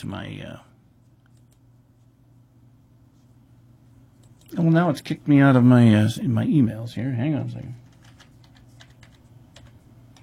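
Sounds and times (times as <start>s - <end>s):
speech: 0.0s - 0.7s, 4.5s - 7.8s
typing on a computer keyboard: 7.8s - 10.2s.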